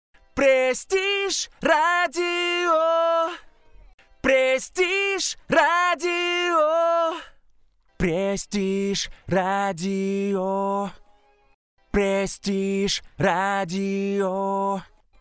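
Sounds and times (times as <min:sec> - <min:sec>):
radio vocal: 0:00.4 - 0:03.4, 0:04.2 - 0:07.3, 0:08.0 - 0:11.0, 0:11.9 - 0:14.9.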